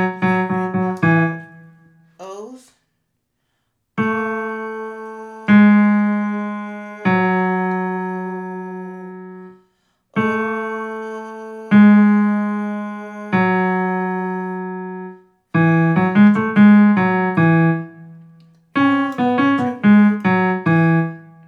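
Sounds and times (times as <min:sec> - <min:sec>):
piano breakdown: 0:00.0 - 0:02.1, 0:04.0 - 0:09.6, 0:10.2 - 0:21.4
choir singing: 0:04.0 - 0:09.5, 0:10.2 - 0:15.1, 0:18.8 - 0:21.0.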